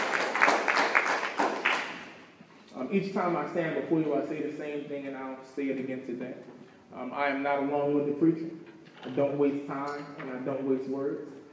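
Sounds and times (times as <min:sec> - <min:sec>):
church congregation clapping hands in praise: 0:00.0 - 0:02.3
speech: 0:02.9 - 0:11.4.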